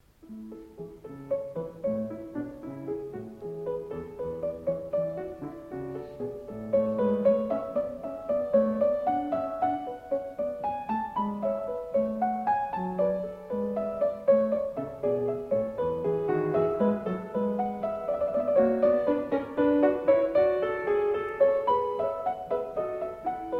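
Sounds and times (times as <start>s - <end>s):
clavier prelude in A major: 0.2s - 23.5s.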